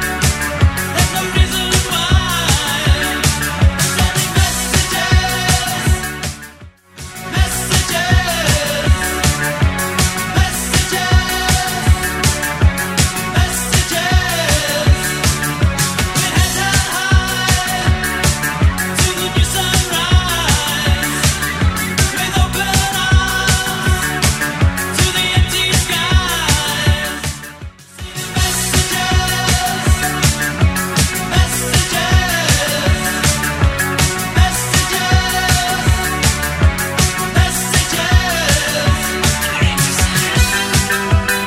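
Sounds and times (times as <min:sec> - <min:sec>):
eighties drum loop at 160 bpm: 0:00.0 - 0:41.4.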